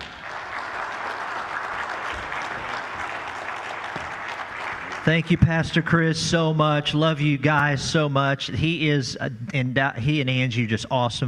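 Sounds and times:
applause: 0.0 - 6.1
speech: 5.0 - 11.2.

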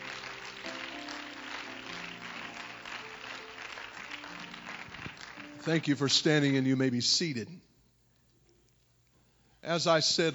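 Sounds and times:
audience clapping hands in praise: 0.0 - 6.0
sustained organ or keyboard tones: 0.0 - 7.6
speech: 5.6 - 7.7, 9.6 - 10.3.

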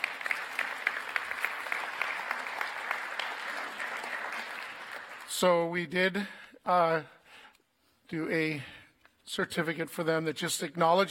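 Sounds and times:
crowd applauding: 0.0 - 5.6
speech: 5.4 - 7.2, 8.1 - 11.0.

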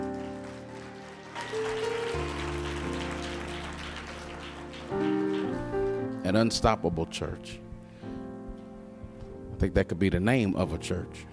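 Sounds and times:
audience clapping: 0.0 - 6.1
keyboard or organ chords: 0.0 - 11.3
speech: 6.3 - 7.6, 9.6 - 11.3.

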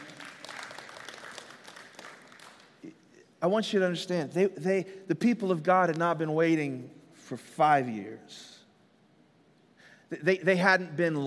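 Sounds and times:
audience clapping: 0.0 - 2.9
speech: 3.4 - 8.5, 10.1 - 11.2.

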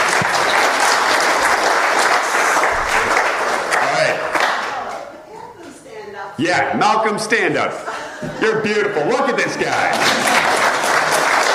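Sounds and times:
audience applause: 0.0 - 5.0, 8.6 - 11.5
speech: 6.4 - 10.6
laughter: 7.6 - 11.5.

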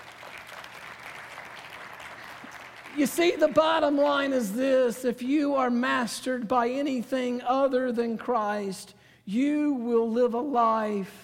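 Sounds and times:
congregation applauding as a clap offering to God during a church service: 0.0 - 3.9
speech: 3.0 - 11.2.

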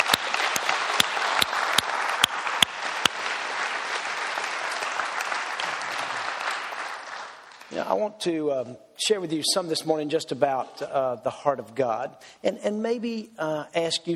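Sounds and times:
church congregation clapping for the musicians: 0.0 - 7.8
speech: 7.8 - 14.1.

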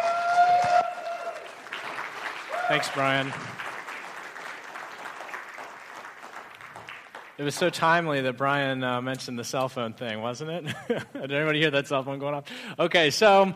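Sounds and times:
audience clapping: 0.0 - 8.1
speech: 2.7 - 3.6, 7.4 - 13.5.

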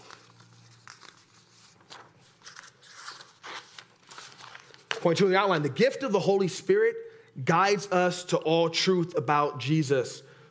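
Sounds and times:
paper sheets crinkling and rustling: 0.0 - 5.7
speech: 5.0 - 10.3.

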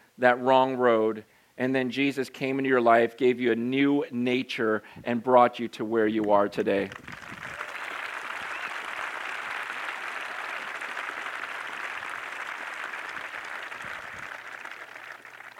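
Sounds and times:
speech: 0.2 - 7.2
audience applause: 6.9 - 15.5.

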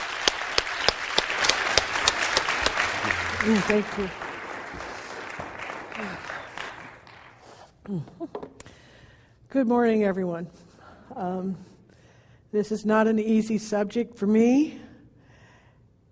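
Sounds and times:
crowd applauding: 0.0 - 7.6
speech: 3.4 - 4.2, 7.9 - 8.4, 9.5 - 10.6, 11.2 - 11.7, 12.5 - 14.8.

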